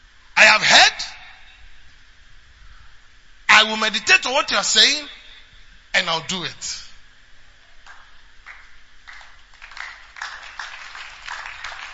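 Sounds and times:
speech: 3.6 - 5.2, 6.0 - 6.8
audience clapping: 7.8 - 11.9.

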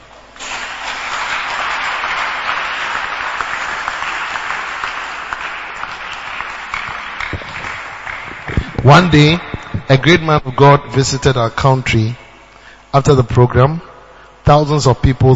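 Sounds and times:
crowd applause: 0.4 - 9.8
speech: 8.8 - 12.2, 12.9 - 13.9, 14.5 - 15.3.

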